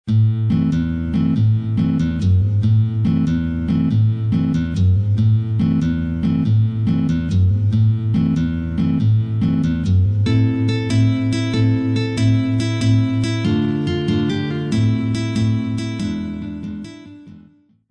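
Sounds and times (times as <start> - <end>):
Neapolitan tarantella on guitar: 0.1 - 17.6.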